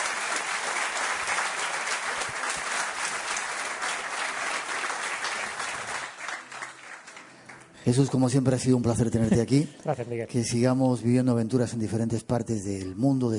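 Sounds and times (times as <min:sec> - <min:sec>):
audience applause: 0:00.0 - 0:07.8
speech: 0:07.8 - 0:13.3.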